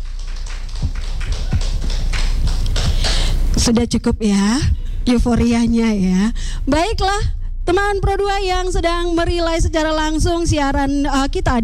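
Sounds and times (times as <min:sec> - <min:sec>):
audience applause: 0:00.0 - 0:03.4
speech: 0:03.6 - 0:11.6.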